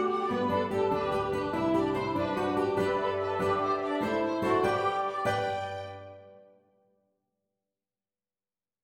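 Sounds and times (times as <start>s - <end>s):
orchestra: 0.0s - 6.4s.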